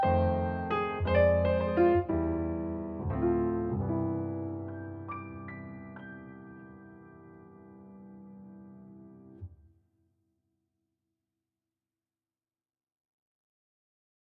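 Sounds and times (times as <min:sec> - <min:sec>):
jazz piano: 0:00.0 - 0:09.5.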